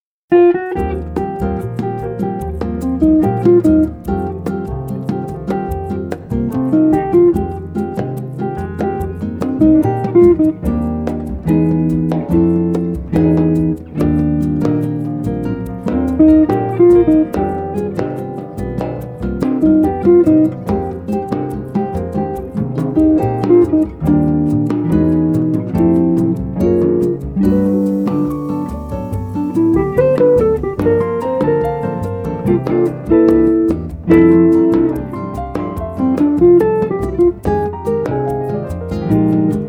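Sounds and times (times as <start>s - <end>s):
trio or quartet playing: 0.4s - 39.6s.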